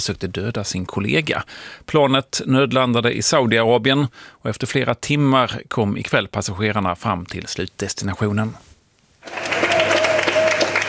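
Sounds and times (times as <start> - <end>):
speech: 0.0 - 9.4
applause from relatives greeting passengers at Ben Gurion Airport Tel Aviv: 9.2 - 10.8.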